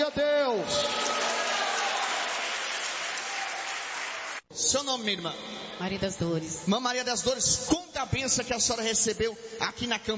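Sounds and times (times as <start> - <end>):
audience applause: 0.7 - 4.4
speech: 4.6 - 10.1.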